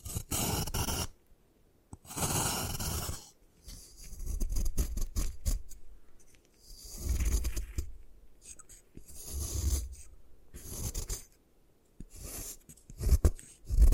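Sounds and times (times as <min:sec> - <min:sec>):
gym chalk crushed and rubbed apart: 0:00.0 - 0:01.1, 0:02.0 - 0:11.4, 0:12.0 - 0:13.9.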